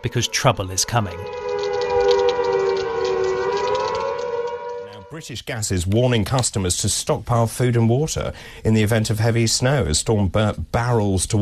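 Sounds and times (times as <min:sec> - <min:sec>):
speech: 0:00.0 - 0:01.5, 0:05.1 - 0:11.4
emergency warning siren wailing: 0:00.0 - 0:05.2
constant hiss: 0:00.0 - 0:11.4.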